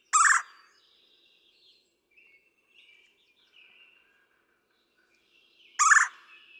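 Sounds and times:
red-bellied woodpecker harsh call: 0:00.1 - 0:00.7, 0:05.8 - 0:06.4.

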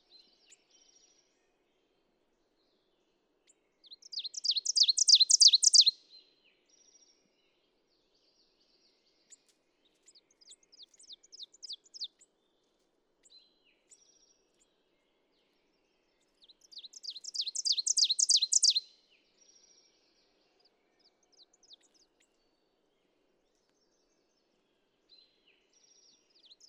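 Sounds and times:
ovenbird singing: 0:03.9 - 0:06.0, 0:10.0 - 0:12.3, 0:16.4 - 0:18.9, 0:26.4 - 0:26.6.

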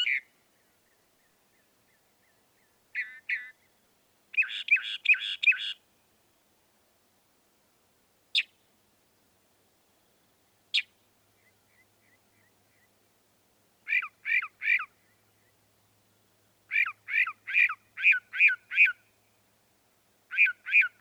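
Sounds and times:
Northern mockingbird singing varied phrases: 0:00.0 - 0:03.7, 0:04.3 - 0:05.8, 0:08.3 - 0:08.6, 0:13.9 - 0:15.6, 0:16.7 - 0:19.0, 0:20.3 - 0:20.9.

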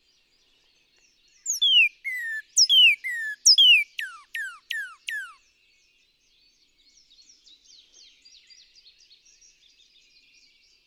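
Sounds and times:
northern cardinal whistling song: 0:01.5 - 0:05.4.

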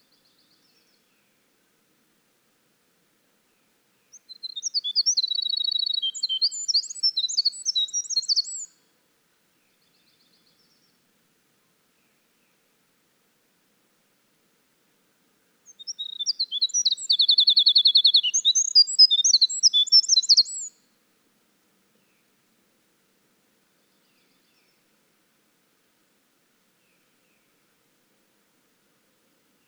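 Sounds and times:
Winter wren song: 0:04.1 - 0:08.8, 0:15.7 - 0:20.8.

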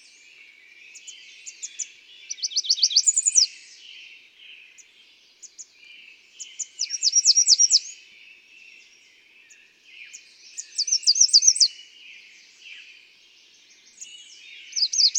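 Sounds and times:
American redstart singing: 0:00.0 - 0:15.1.

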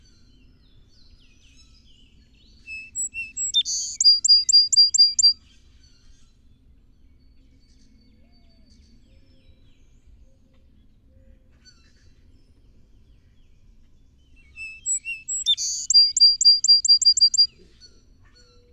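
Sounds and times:
song sparrow song: 0:00.2 - 0:05.4, 0:14.2 - 0:17.5.

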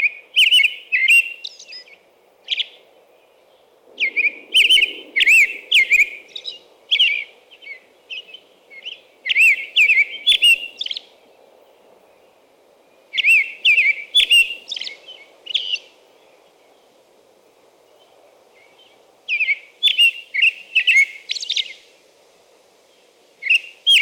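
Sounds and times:
American robin whistling song: 0:00.0 - 0:02.8, 0:04.0 - 0:11.2, 0:12.9 - 0:16.8, 0:18.0 - 0:21.8, 0:23.4 - 0:23.9.

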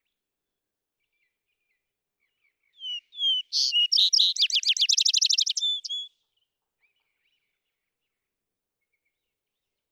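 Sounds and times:
vesper sparrow song: 0:02.8 - 0:06.1.

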